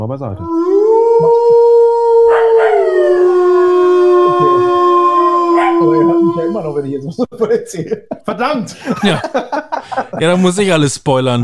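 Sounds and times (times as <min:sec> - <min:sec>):
speech: 0:00.0 - 0:01.6, 0:05.8 - 0:11.4
wolf howl sound effect: 0:00.4 - 0:07.0
laughter: 0:05.8 - 0:10.4.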